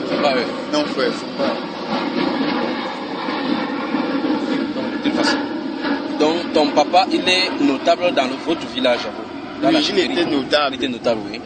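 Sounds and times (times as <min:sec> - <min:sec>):
airplane flying overhead: 0:00.0 - 0:11.4
speech: 0:00.3 - 0:02.2, 0:06.9 - 0:11.4.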